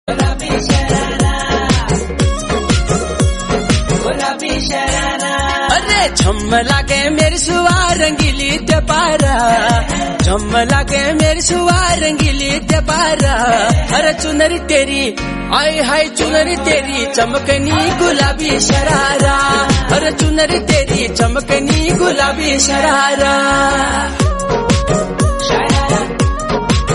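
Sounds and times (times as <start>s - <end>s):
romantic song: 0.1s - 26.9s.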